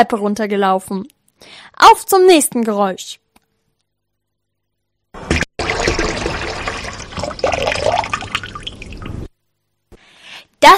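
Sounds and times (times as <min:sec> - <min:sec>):
speech: 0:00.0 - 0:03.2
water tap running: 0:05.2 - 0:09.3.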